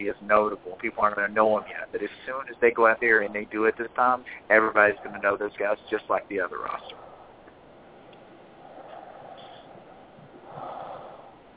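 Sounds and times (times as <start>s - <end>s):
speech: 0.0s - 7.0s
heavy rasping breathing like Darth Vader: 4.2s - 5.5s, 6.8s - 7.4s, 8.5s - 11.5s.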